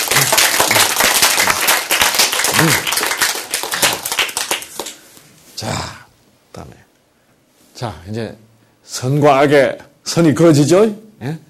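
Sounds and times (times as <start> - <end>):
audience applause: 0.0 - 5.0
speech: 2.6 - 3.0, 5.6 - 6.0, 6.6 - 6.8, 7.8 - 11.4.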